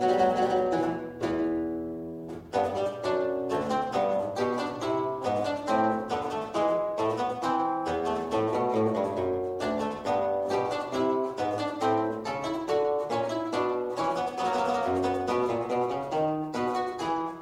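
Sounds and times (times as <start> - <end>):
historical keyboard lute: 0.0 - 17.3.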